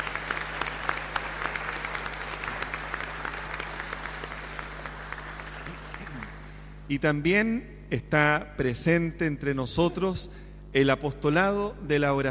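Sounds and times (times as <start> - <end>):
audience applause: 0.0 - 6.6
speech: 6.9 - 12.2.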